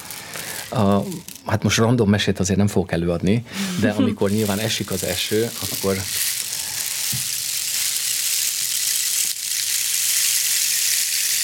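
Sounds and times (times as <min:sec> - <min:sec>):
rainstick being shaken: 0:00.0 - 0:01.6, 0:04.2 - 0:11.4
speech: 0:00.7 - 0:06.4.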